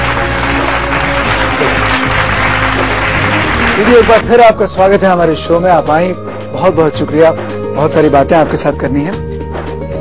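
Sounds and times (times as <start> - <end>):
studio audience applauding a guest on a Hindi talk show: 0.0 - 4.4
speech: 3.8 - 9.2.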